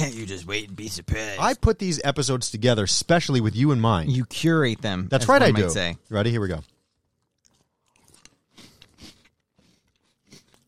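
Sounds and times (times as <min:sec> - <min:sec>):
speech: 0:00.0 - 0:06.7
someone chewing and crunching crunchy cereal: 0:06.4 - 0:10.6.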